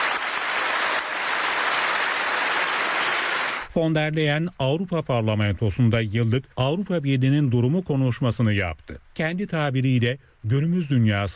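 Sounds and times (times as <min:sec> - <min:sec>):
standing ovation for Mark Carney in the European Parliament plenary: 0:00.0 - 0:03.7
speech: 0:03.8 - 0:11.3.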